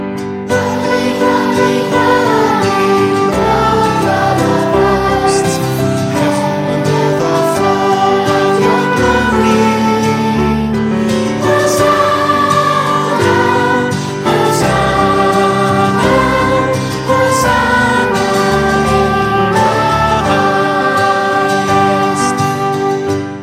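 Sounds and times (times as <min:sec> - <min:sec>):
vocal singing: 0:00.5 - 0:23.1.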